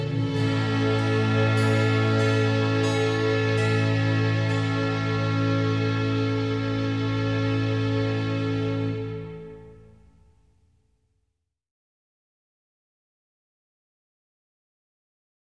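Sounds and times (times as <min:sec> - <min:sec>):
organ concerto adagio: 0:00.0 - 0:10.2.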